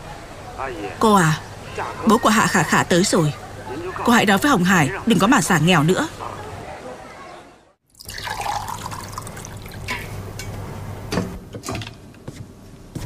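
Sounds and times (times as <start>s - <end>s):
speech: 0.6s - 6.3s
water pouring into a glass for drinking: 7.9s - 9.9s.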